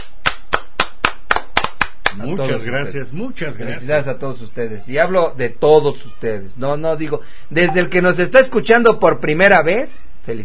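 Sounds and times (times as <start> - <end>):
rhythmic clapping: 0.0 - 2.3
speech: 2.2 - 10.4.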